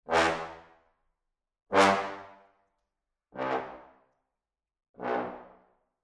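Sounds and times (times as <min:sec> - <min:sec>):
brass playing staccatissimo: 0:00.1 - 0:00.6, 0:03.4 - 0:03.8, 0:05.0 - 0:05.4.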